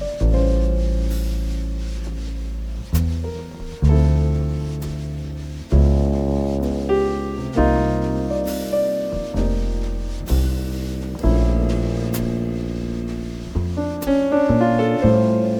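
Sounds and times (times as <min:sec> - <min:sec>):
modern swing jazz trio playing instrumental: 0:00.0 - 0:15.5.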